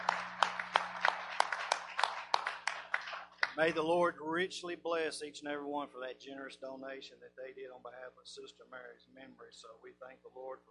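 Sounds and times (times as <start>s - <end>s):
audience clapping in a quick steady rhythm: 0.0s - 3.8s
speech: 3.6s - 10.6s.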